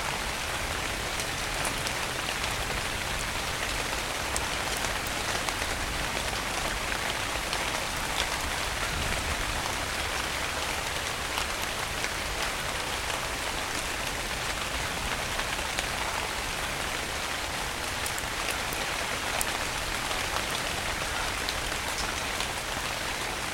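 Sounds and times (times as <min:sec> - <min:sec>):
rain storm: 0:00.0 - 0:23.5.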